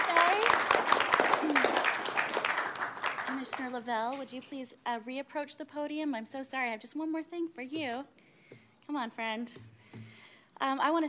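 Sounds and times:
audience applause: 0:00.0 - 0:03.6
speech: 0:03.5 - 0:08.2, 0:08.9 - 0:09.7, 0:10.6 - 0:11.0.

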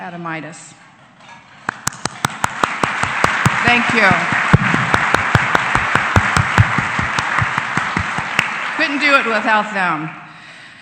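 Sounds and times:
speech: 0:00.0 - 0:00.9, 0:03.7 - 0:04.8, 0:08.9 - 0:10.2
audience applause: 0:01.8 - 0:10.2.

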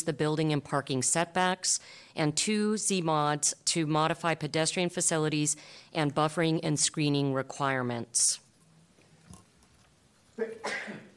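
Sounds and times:
speech: 0:00.0 - 0:08.4, 0:10.4 - 0:11.1
person sneezing: 0:10.4 - 0:11.1.

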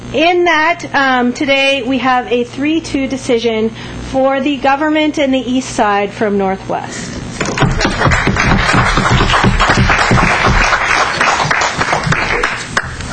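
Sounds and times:
speech: 0:00.1 - 0:07.2
audience applause: 0:07.5 - 0:12.9.

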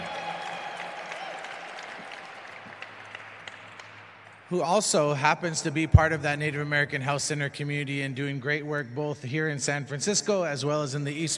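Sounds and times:
audience applause: 0:00.0 - 0:04.5
speech: 0:04.5 - 0:11.3.

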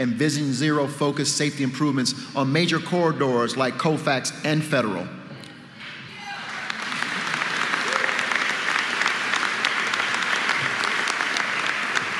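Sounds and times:
speech: 0:00.0 - 0:05.2
crowd applauding: 0:06.2 - 0:12.1
scattered cheers and whoops: 0:07.7 - 0:08.4.

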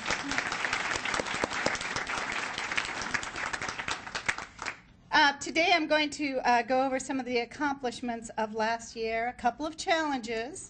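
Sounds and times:
audience applause for staff: 0:00.0 - 0:04.8
speech: 0:05.4 - 0:10.6.

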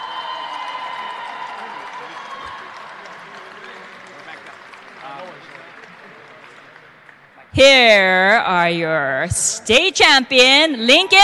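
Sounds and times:
audience applause and cheering: 0:00.0 - 0:07.5
speech: 0:07.6 - 0:11.2.

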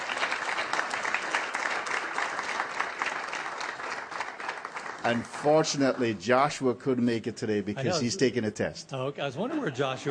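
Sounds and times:
applause: 0:00.0 - 0:06.2
speech: 0:05.0 - 0:10.0.

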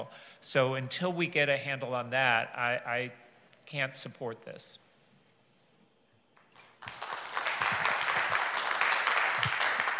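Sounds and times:
speech: 0:00.0 - 0:04.8
audience applause: 0:06.5 - 0:09.9.

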